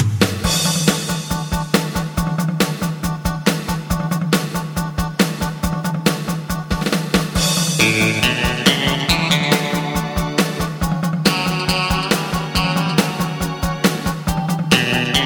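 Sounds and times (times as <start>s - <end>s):
bass: 0.2s - 15.2s.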